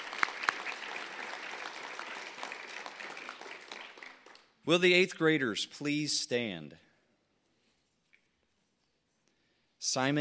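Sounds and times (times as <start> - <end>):
applause for eighth grade parents: 0.0 - 4.9
speech: 4.7 - 6.8, 9.9 - 10.1.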